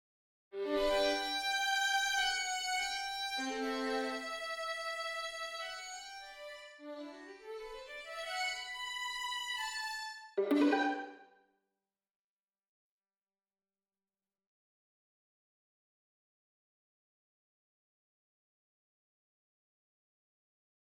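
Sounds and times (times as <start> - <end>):
violin: 0.6 - 11.3.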